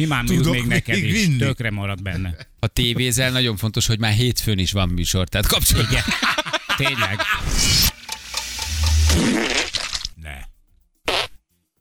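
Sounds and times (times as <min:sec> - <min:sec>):
speech: 0:00.0 - 0:07.9
laughter: 0:00.2 - 0:02.6, 0:05.6 - 0:07.9
fart into a glass jar: 0:08.8 - 0:10.2, 0:11.1 - 0:11.4.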